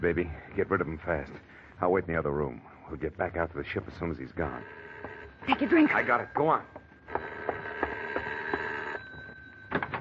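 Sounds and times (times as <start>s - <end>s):
speech: 0.0s - 6.8s
doorbell ringing insistently: 4.6s - 9.9s.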